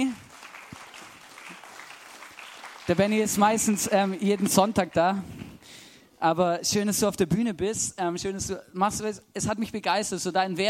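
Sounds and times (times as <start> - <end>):
audience clapping: 0.0 - 5.6
speech: 2.9 - 5.4, 6.2 - 10.6.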